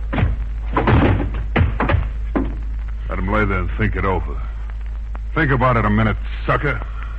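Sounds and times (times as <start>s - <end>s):
punches landing on a man in a fight: 0.1s - 2.6s
speech: 3.3s - 4.6s, 5.3s - 7.0s.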